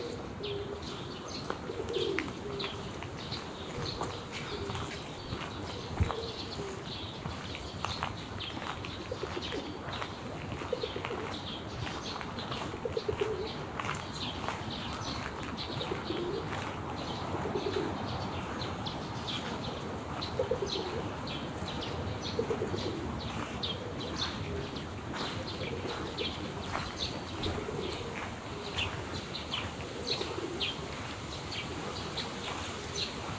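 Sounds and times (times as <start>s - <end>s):
pigeon cooing: 0.0s - 2.9s, 3.8s - 5.0s, 5.8s - 6.8s, 10.6s - 11.4s, 12.8s - 13.6s, 15.8s - 16.6s, 17.2s - 18.0s, 20.4s - 21.2s, 22.2s - 26.8s, 27.4s - 31.0s
small birds chirping: 0.0s - 33.3s.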